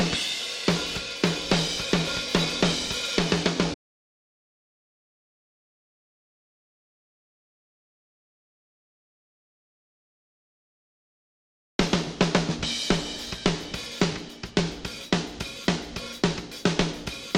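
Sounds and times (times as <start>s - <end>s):
drums: 0.0s - 3.8s, 11.8s - 17.3s.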